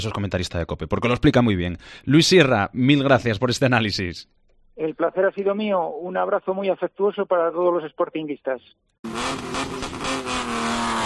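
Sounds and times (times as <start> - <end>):
speech: 0.0 - 10.6
rally car engine revving hard at a street rally in Oviedo: 9.1 - 11.0.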